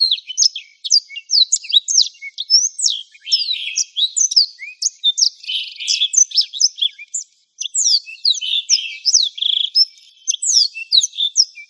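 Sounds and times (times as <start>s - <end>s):
black-throated canary twittering song: 0.0s - 11.6s.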